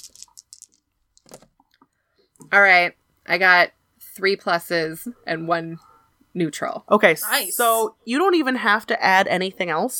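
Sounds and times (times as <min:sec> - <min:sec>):
four plastic dice being rolled: 0:00.0 - 0:01.5
speech: 0:02.5 - 0:09.9.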